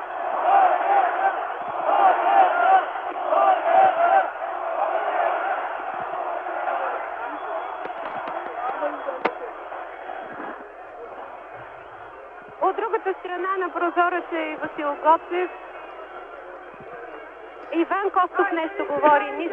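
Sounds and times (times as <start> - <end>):
large crowd chanting victory: 0.0 - 19.5
speech: 13.7 - 15.6, 17.8 - 19.5.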